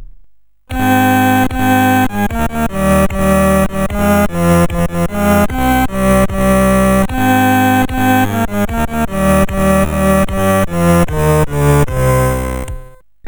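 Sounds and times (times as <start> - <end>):
sea shanty loop: 0.7 - 13.0.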